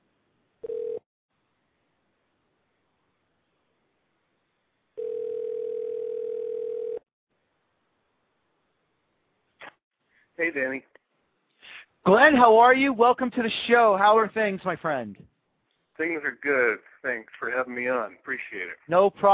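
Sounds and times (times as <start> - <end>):
telephone line tone: 0.6 - 1.0, 5.0 - 7.0
speech: 10.4 - 11.0, 12.0 - 15.3, 16.0 - 19.3.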